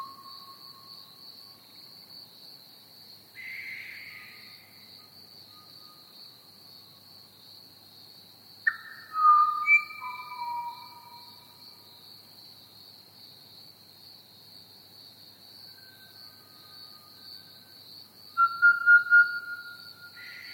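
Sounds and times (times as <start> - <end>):
Pied Butcherbird singing flute-like whistles: 8.7 - 11.4, 18.4 - 20.5.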